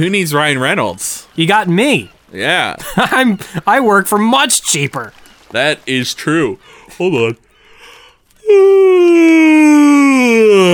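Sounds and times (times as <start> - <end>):
speech: 0.0 - 7.4, 8.5 - 10.7
laughter: 2.6 - 3.9
yawn turned into a vocal scale: 8.4 - 10.7.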